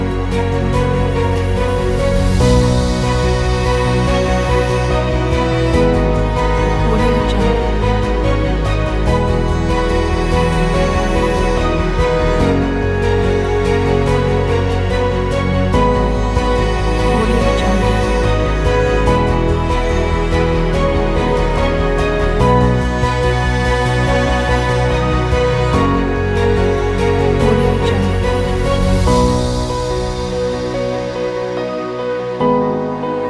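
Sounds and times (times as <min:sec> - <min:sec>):
inspiring beautiful piano music: 0:00.0 - 0:33.2.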